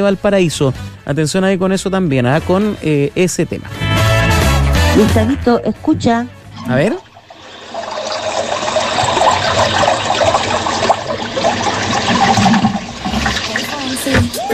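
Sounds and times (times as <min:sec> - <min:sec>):
speech: 0:00.0 - 0:03.8, 0:05.0 - 0:07.0
water gushing: 0:06.6 - 0:14.5.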